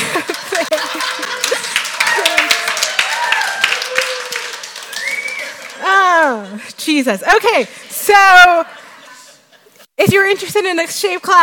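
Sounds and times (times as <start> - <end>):
laughter: 0.0 - 3.0, 8.4 - 9.9
audience clapping: 0.0 - 6.3
people cheering and whooping: 0.0 - 6.5
speech: 6.9 - 8.8, 10.0 - 11.4.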